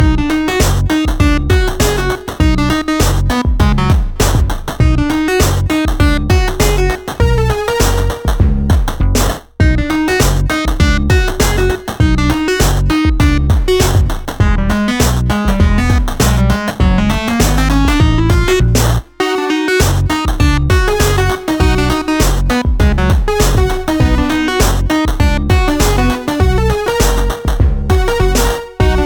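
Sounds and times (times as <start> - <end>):
clumsy platformer game music loop: 0.0 - 29.0.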